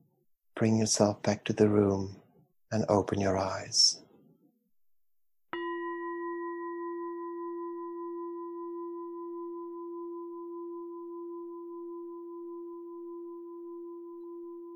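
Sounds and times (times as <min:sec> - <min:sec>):
speech: 0:00.6 - 0:04.0
meditation bell ringing: 0:05.6 - 0:14.7.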